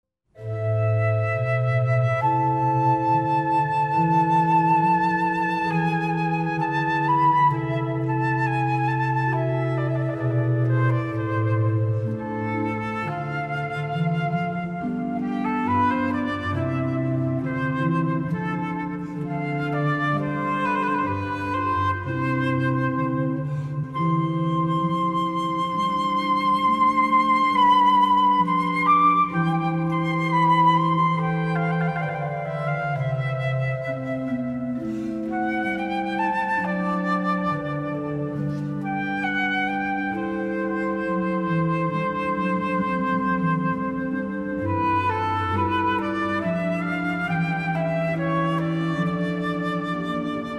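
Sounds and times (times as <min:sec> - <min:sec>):
sonata for flute and organ in C major: 0:00.4 - 0:50.5.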